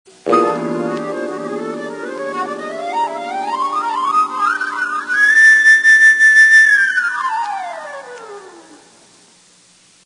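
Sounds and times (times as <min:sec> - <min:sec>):
fanfare: 0:00.2 - 0:06.3.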